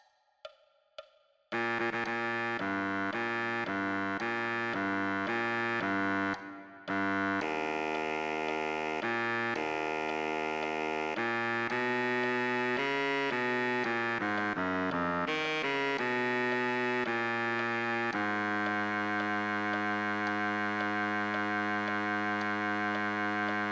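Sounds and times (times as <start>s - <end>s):
baritone saxophone: 1.5s - 23.7s.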